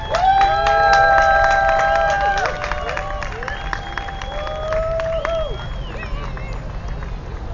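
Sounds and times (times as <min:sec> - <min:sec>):
crowd cheering and screaming: 0:00.0 - 0:07.0.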